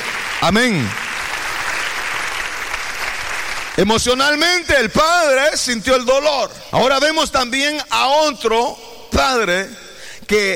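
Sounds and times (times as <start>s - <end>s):
congregation applauding during a Spanish-language church service: 0.0s - 5.4s
speech: 0.4s - 1.0s, 3.8s - 10.5s.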